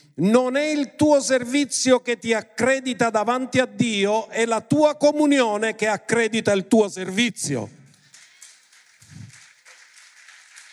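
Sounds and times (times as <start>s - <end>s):
speech: 0.2s - 7.8s
scattered applause from a small audience: 7.9s - 10.7s.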